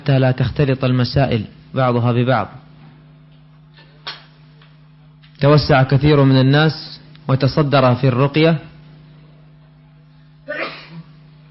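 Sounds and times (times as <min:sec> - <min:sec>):
speech: 0:00.0 - 0:02.6, 0:05.4 - 0:08.7
steady low electrical hum: 0:00.0 - 0:11.4
person sneezing: 0:10.4 - 0:11.2.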